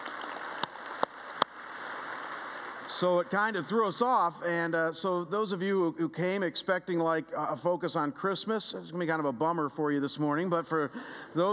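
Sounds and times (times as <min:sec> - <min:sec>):
scattered audience claps: 0:00.0 - 0:04.2
speech: 0:02.9 - 0:11.5.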